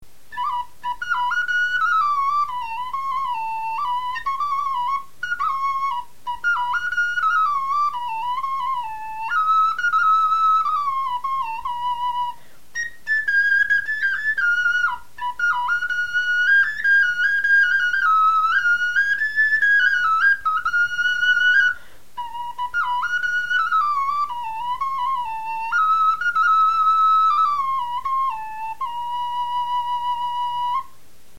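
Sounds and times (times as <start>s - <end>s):
bone flute melody: 0.2s - 31.0s.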